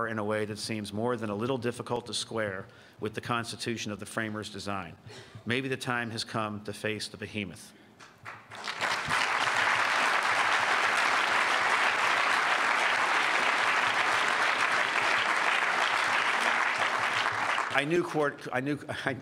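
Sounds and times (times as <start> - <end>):
speech: 0.0 - 8.4, 17.8 - 19.2
audience applause: 8.3 - 18.1.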